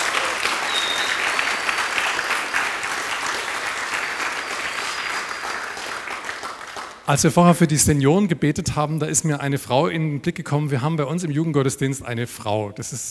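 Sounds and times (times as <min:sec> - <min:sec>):
applause: 0:00.0 - 0:07.1
speech: 0:07.1 - 0:13.0.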